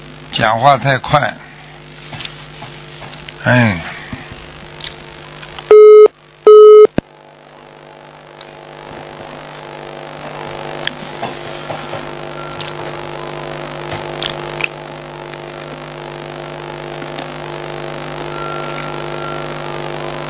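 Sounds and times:
speech: 0.3 - 1.4, 3.4 - 3.9
low hum with faint clicks: 4.1 - 9.5, 10.2 - 16.2, 16.8 - 17.7
phone busy signal beeps after call dropped: 5.7 - 6.9, 12.4 - 12.6, 18.3 - 19.8.

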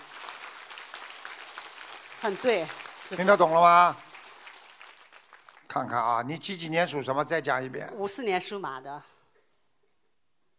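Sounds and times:
crowd clapping: 0.0 - 6.6
speech: 2.2 - 4.0, 5.8 - 9.1.

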